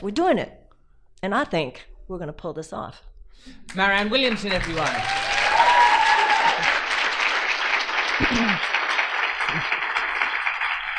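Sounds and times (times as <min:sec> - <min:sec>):
speech: 0:00.0 - 0:00.6, 0:01.2 - 0:05.7, 0:08.2 - 0:08.7
audience applause: 0:04.0 - 0:10.9.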